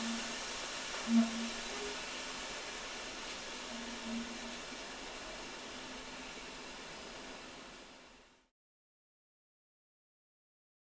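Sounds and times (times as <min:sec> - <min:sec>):
industrial milling machine running and turned off: 0:00.0 - 0:08.2.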